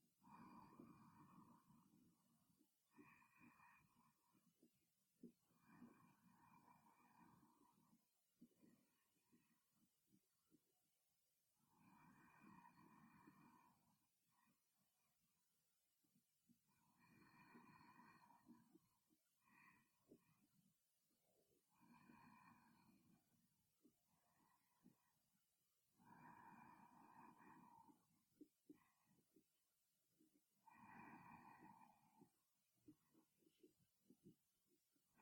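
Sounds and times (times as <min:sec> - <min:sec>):
sleeping breath: 0:00.2 - 0:04.6, 0:05.5 - 0:09.7, 0:11.7 - 0:14.7, 0:16.8 - 0:20.5, 0:21.7 - 0:23.3, 0:25.9 - 0:29.5, 0:30.6 - 0:34.4.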